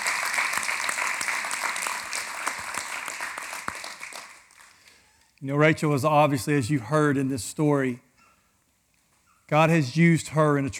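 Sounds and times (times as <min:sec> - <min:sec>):
audience applause and hand clapping: 0:00.0 - 0:04.8
speech: 0:05.4 - 0:08.1, 0:09.5 - 0:10.7.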